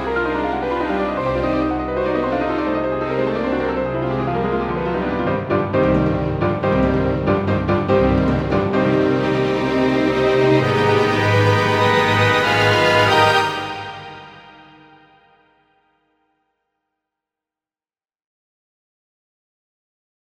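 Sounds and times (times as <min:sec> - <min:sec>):
piano concerto: 0:00.0 - 0:15.3.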